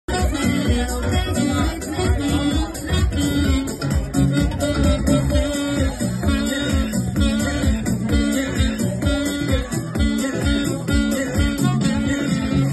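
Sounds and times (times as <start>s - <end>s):
saxophone playing live: 0.1s - 12.7s.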